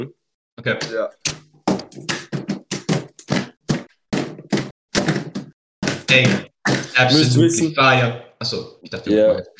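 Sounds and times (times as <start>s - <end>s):
speech: 0.0s - 2.4s, 6.1s - 9.5s
beat drummed on a cat litter box: 1.7s - 7.0s.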